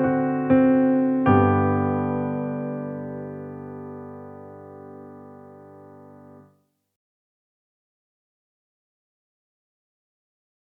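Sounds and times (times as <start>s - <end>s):
piano prelude in G major: 0.0s - 6.6s.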